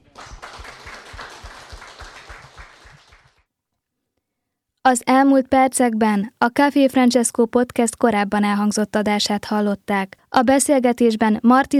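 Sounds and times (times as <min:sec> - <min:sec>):
crowd applauding: 0:00.0 - 0:03.5
speech: 0:04.9 - 0:11.7.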